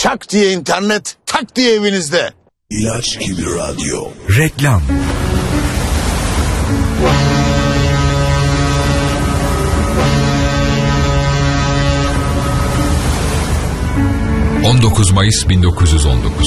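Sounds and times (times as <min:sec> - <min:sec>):
speech: 0:00.1 - 0:05.4, 0:14.7 - 0:16.4
waves on the foggy Black Sea: 0:04.8 - 0:14.8
ship's horn on the foggy Black Sea: 0:05.0 - 0:14.7.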